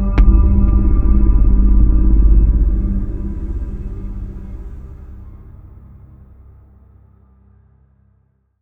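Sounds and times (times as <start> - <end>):
battle music: 0.2 - 5.8.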